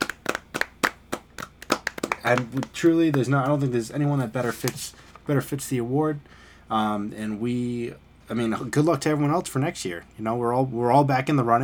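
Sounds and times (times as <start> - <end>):
people clapping: 0.0 - 3.6
speech: 2.2 - 11.6.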